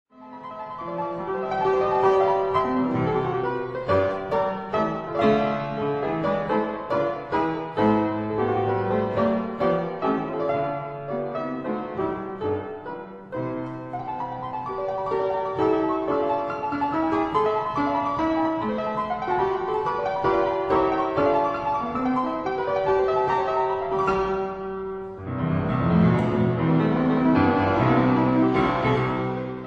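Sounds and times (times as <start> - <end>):
keyboard sonata: 0.2 - 29.6.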